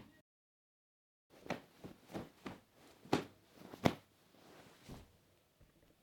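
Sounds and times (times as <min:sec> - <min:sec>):
pillow puffing: 0:01.4 - 0:05.1.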